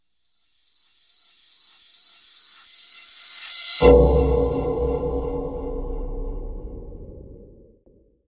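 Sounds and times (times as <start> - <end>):
ambience: 3.8 - 7.6.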